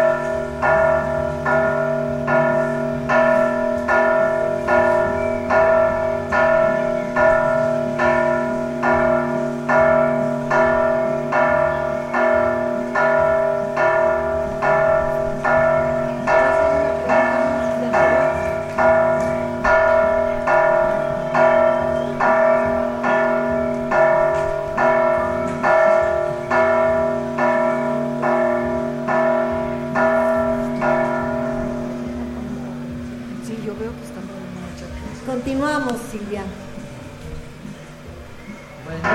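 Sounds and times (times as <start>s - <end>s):
church bells ringing during the fair in Tlaltenango: 0.0s - 39.1s.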